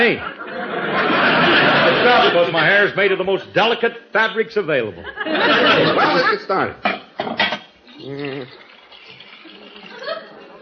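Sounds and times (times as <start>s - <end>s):
speech: 0.0s - 0.4s, 2.0s - 7.4s, 8.0s - 8.6s
laughter: 0.0s - 2.6s, 5.0s - 6.4s, 9.6s - 10.6s
liquid pouring into a pot of boiling water: 8.2s - 10.6s.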